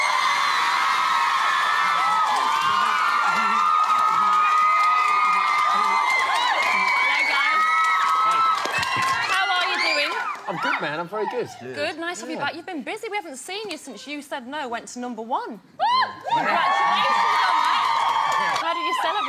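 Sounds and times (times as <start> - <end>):
girls in an audience screaming and cheering as a pop band appears: 0.0 - 10.7, 15.8 - 19.2
speech: 10.8 - 17.2, 19.0 - 19.2.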